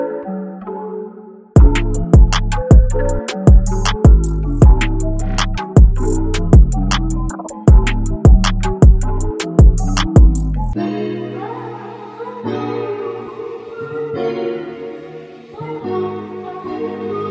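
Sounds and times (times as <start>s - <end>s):
drum kit: 1.6s - 10.6s.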